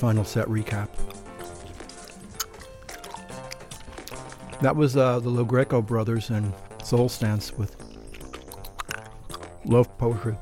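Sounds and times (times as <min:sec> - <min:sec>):
speech: 0:00.0 - 0:01.2, 0:04.6 - 0:07.8, 0:09.6 - 0:10.4
loud wet gum chewing: 0:00.6 - 0:04.7, 0:06.5 - 0:10.4.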